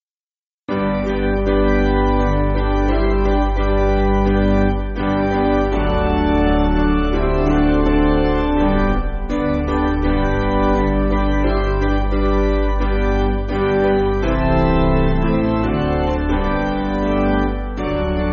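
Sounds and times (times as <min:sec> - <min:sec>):
church piano backing: 0:00.7 - 0:18.3.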